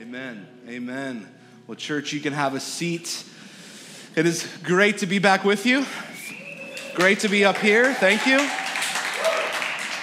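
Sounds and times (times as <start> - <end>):
speech: 0.1 - 3.5, 4.2 - 6.1, 7.0 - 8.6
audience clapping: 6.3 - 10.0.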